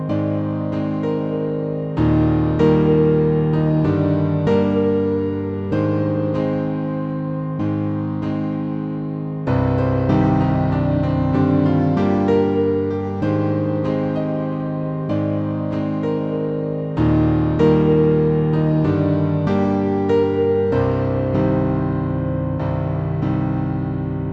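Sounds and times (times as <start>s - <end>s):
piano: 0.0s - 24.3s.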